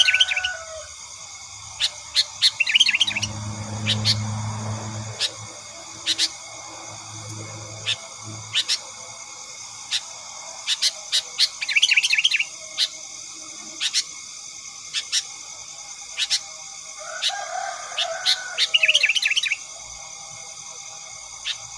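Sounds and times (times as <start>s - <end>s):
Sooty-headed bulbul chattering: 0.0s - 21.7s.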